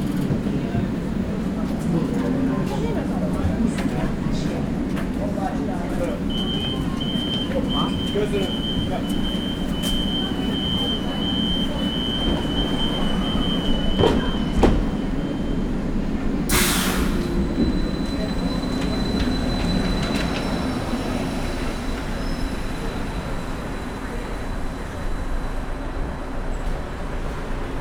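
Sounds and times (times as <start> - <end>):
two trolleybuses arriving and leaving at a terminus: 0.0 - 27.8.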